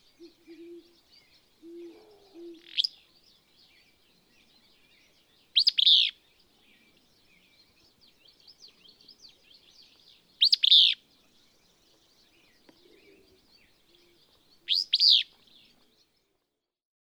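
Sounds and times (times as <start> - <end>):
Willow Flycatcher: 0.0 - 16.7.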